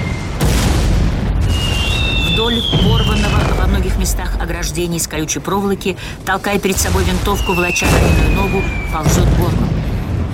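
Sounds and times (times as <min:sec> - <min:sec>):
artillery shells exploding: 0:00.0 - 0:04.1, 0:06.7 - 0:10.3
speech: 0:02.5 - 0:09.8.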